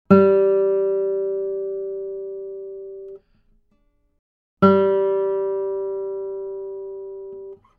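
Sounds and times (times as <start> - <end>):
plucked strings: 0.1 - 3.2, 4.6 - 7.7.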